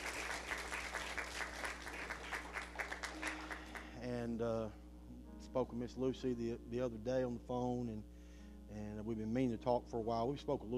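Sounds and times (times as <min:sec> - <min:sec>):
audience applauding: 0:00.0 - 0:04.0
speech: 0:04.2 - 0:04.8, 0:05.5 - 0:08.1, 0:08.7 - 0:10.7.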